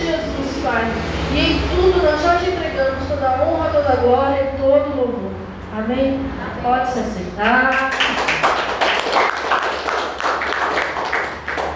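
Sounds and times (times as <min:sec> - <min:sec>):
speech: 0:00.7 - 0:08.2
clapping: 0:07.7 - 0:11.7.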